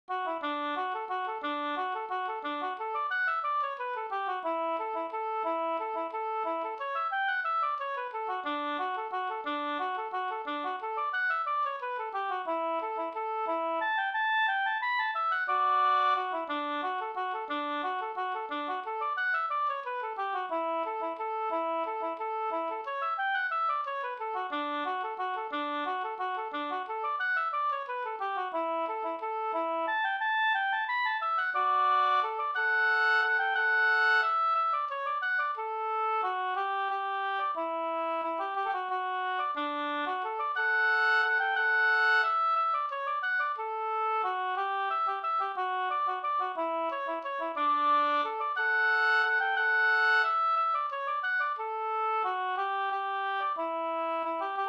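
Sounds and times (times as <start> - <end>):
waltz music: 0.2 - 46.9, 47.6 - 54.6.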